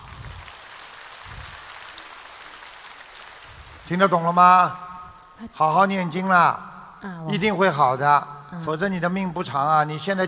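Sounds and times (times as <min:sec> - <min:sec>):
crowd applauding: 0:00.0 - 0:05.3
speech: 0:03.9 - 0:04.8, 0:05.4 - 0:10.2.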